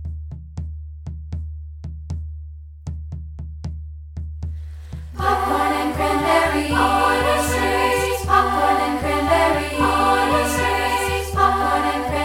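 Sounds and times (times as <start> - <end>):
a cappella singing: 5.2 - 12.2.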